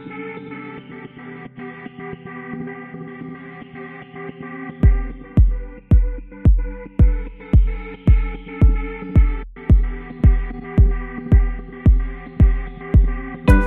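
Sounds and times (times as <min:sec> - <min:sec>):
corporate music: 0:04.9 - 0:13.6.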